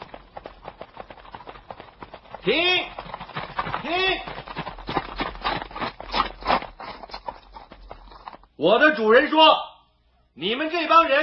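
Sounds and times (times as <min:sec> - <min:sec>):
horse hoofbeats approaching from behind: 0:00.0 - 0:08.6
speech: 0:02.4 - 0:03.0, 0:08.6 - 0:09.7, 0:10.4 - 0:11.2.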